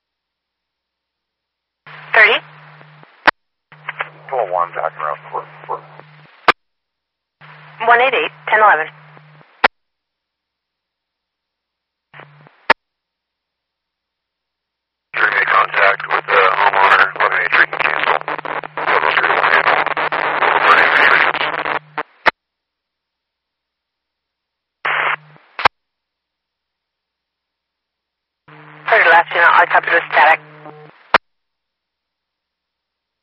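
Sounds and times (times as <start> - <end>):
radio static: 1.9 - 6.6, 7.4 - 9.7, 12.2 - 12.8, 15.2 - 22.3, 24.9 - 25.7, 28.5 - 31.2
speech: 2.2 - 2.5, 4.5 - 5.5, 7.9 - 9.0.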